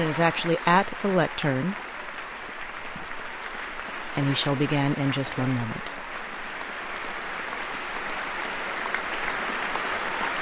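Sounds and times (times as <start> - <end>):
standing chamber applauding: 0.0 - 10.4
speech: 0.1 - 1.9, 4.2 - 5.9.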